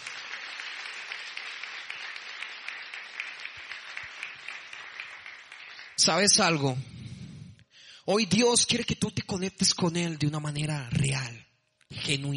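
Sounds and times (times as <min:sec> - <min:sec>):
audience applause: 0:00.0 - 0:06.4
speech: 0:06.0 - 0:06.9, 0:08.1 - 0:11.4, 0:12.0 - 0:12.3.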